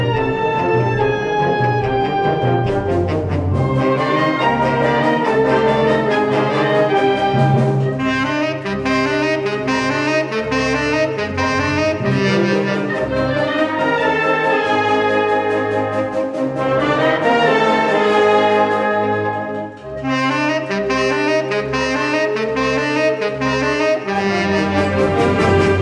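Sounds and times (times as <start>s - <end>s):
band playing: 0.0s - 25.8s.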